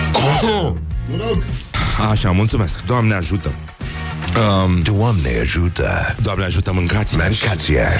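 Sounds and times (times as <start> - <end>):
sneeze: 0.1 - 0.8
speech: 0.4 - 3.8, 4.4 - 7.9.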